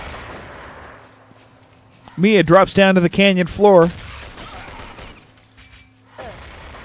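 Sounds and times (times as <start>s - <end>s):
pistol gunfire including a Desert Eagle in a capture-the-flag video game: 0.0s - 1.1s, 2.5s - 6.8s
speech: 2.2s - 4.0s.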